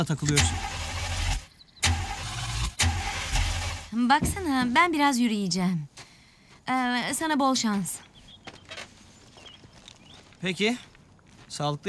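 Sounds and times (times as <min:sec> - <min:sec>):
speech: 0:00.0 - 0:00.7, 0:03.9 - 0:05.9, 0:06.7 - 0:08.1, 0:10.4 - 0:10.9, 0:11.5 - 0:11.8
car engine being started: 0:00.0 - 0:04.5.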